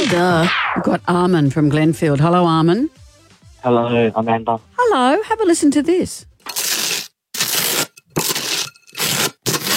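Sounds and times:
speech: 0:00.1 - 0:03.0, 0:03.6 - 0:06.3
butter spread on toast: 0:06.5 - 0:09.7.

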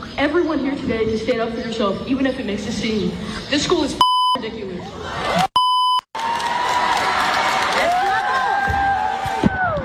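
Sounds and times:
speech: 0:00.2 - 0:04.6
adult crowd cheering: 0:06.2 - 0:09.8.

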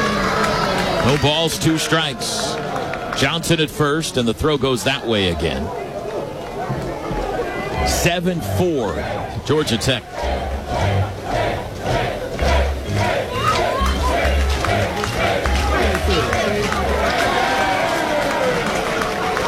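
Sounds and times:
baseball crowd clapping: 0:00.0 - 0:04.5, 0:09.6 - 0:19.4
large baseball crowd chanting and cheering: 0:00.0 - 0:19.4
speech: 0:01.0 - 0:02.6, 0:03.2 - 0:05.8, 0:07.8 - 0:11.0.

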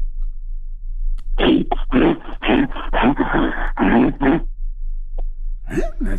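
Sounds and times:
person imitating a bear's growl: 0:01.4 - 0:04.4, 0:05.7 - 0:06.1.

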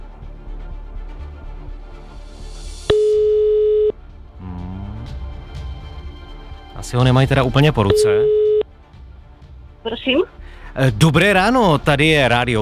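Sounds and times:
telephone ringback tone while calling: 0:02.9 - 0:03.9, 0:07.9 - 0:08.7
speech: 0:06.8 - 0:08.4, 0:09.8 - 0:12.6.

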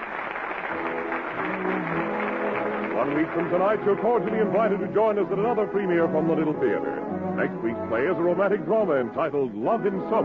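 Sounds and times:
theater audience ovation: 0:00.0 - 0:05.7
speech: 0:03.1 - 0:10.2.

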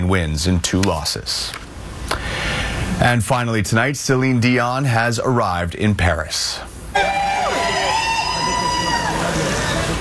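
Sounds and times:
speech: 0:00.1 - 0:01.7, 0:03.0 - 0:06.8
crowd of fans behind barriers outside a Paris hotel cheering for a singer: 0:07.0 - 0:09.9.

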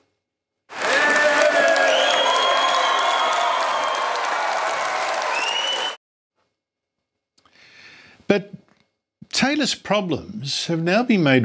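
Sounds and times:
crowd cheering and applauding: 0:00.7 - 0:06.0
speech: 0:08.3 - 0:08.6, 0:09.4 - 0:11.4.

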